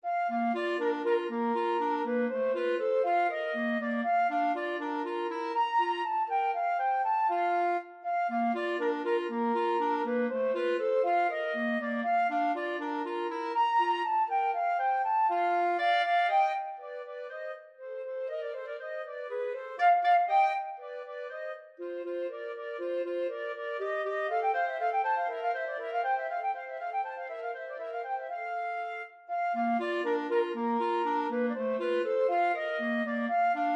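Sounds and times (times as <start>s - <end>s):
flute and clarinet duet: 0.0s - 33.7s.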